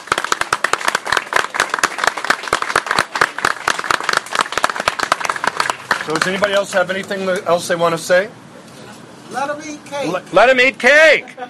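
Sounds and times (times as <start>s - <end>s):
applause: 0.0s - 6.8s
speech: 6.1s - 8.4s, 9.3s - 11.4s.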